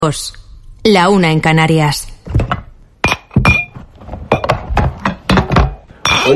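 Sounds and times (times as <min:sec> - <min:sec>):
speech: 0:00.0 - 0:02.5
plates, glasses and cutlery being set on the table before Christmas lunch: 0:02.4 - 0:06.3.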